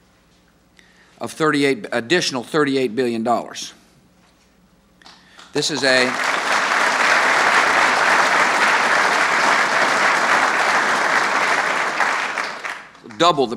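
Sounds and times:
speech: 1.2s - 3.8s, 5.6s - 6.4s, 13.2s - 13.5s
sustained applause from a large audience: 5.6s - 13.4s.

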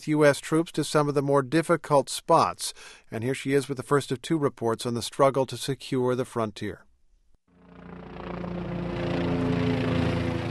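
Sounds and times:
speech: 0.0s - 6.9s, 7.8s - 8.4s
Kiowa helicopter flying overhead: 7.5s - 10.4s.

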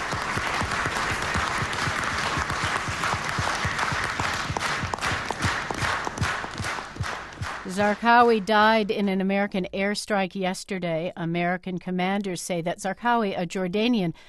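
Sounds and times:
Iraqi journalists applauding at press conference: 0.0s - 8.6s
speech: 7.8s - 14.2s.

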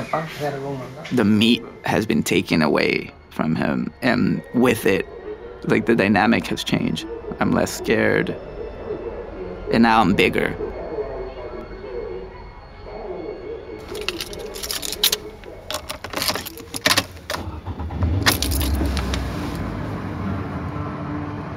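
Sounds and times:
speech: 0.1s - 8.5s, 9.7s - 10.7s
keys jangling: 13.8s - 17.5s, 18.2s - 19.6s
clothing and car seat rustling: 13.8s - 20.1s
low car engine rumble: 13.8s - 21.5s.

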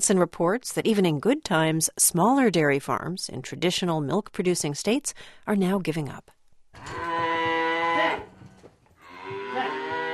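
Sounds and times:
speech: 0.0s - 7.1s
dairy cattle lowing on a farm in Holden, Missouri, on a frigid night: 6.8s - 10.1s.

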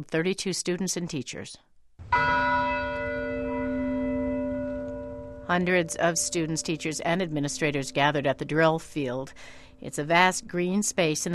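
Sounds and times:
speech: 0.0s - 2.9s, 5.5s - 11.3s
campus bells ringing at Virginia Tech: 2.1s - 9.8s.

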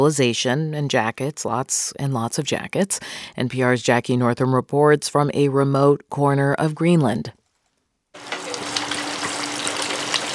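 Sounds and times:
speech: 0.0s - 7.4s
hot oil bubbling in deep fryer as whole red fish is lowered: 8.2s - 10.3s.

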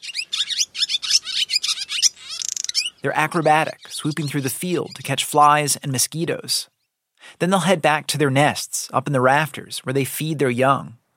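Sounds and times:
barn swallow singing: 0.0s - 5.4s
speech: 3.0s - 6.7s, 7.4s - 11.0s.

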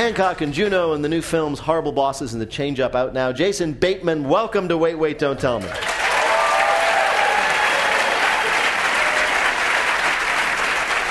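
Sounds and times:
speech: 0.0s - 6.0s
studio audience applause: 5.7s - 11.1s.

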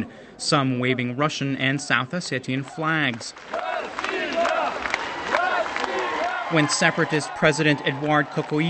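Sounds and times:
speech: 0.0s - 3.7s, 6.5s - 8.6s
crowd of residents in Tskhinvali, South Ossetia, shouting and cheering: 2.5s - 8.6s.

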